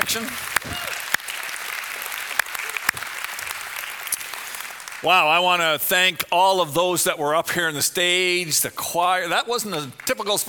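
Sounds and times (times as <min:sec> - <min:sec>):
audience clapping: 0:00.0 - 0:05.8, 0:09.8 - 0:10.4
speech: 0:00.1 - 0:01.1, 0:05.0 - 0:10.4.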